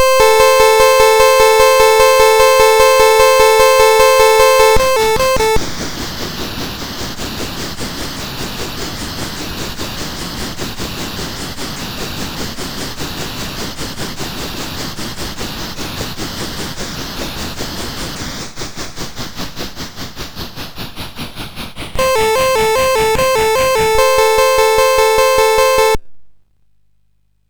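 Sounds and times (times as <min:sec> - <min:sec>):
train sound on MOS6581R2 chip: 0:00.0 - 0:05.6, 0:22.0 - 0:26.0.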